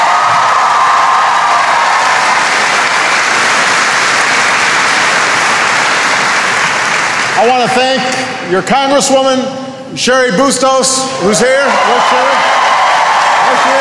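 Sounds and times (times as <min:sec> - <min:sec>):
audience applause: 0:00.0 - 0:07.8, 0:11.5 - 0:13.8
speech: 0:07.4 - 0:12.8.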